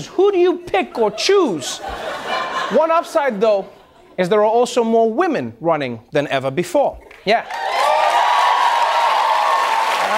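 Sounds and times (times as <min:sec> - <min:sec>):
speech: 0:00.0 - 0:07.6
laughter: 0:00.4 - 0:04.2
audience applause: 0:07.3 - 0:10.1
faint cheering: 0:07.4 - 0:10.1.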